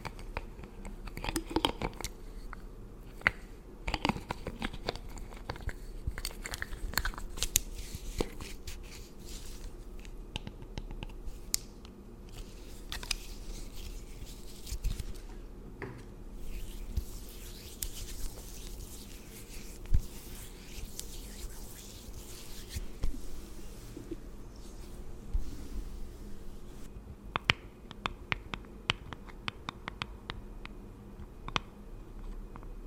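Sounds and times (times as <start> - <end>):
steady low hum: 0.0 - 32.8
soft brushing and rustling of skin and hair pampering: 7.5 - 10.0, 12.3 - 15.4, 16.3 - 26.9.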